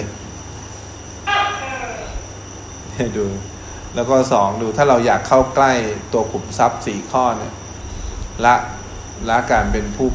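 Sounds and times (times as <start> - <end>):
low hum: 0.0 - 10.1
tokay gecko calling: 1.1 - 2.9
speech: 3.0 - 7.6, 8.4 - 10.1.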